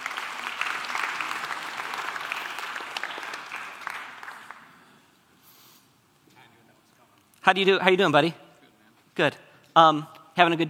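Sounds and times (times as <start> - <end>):
audience applause: 0.0 - 5.0
speech: 7.5 - 8.4, 9.2 - 10.6.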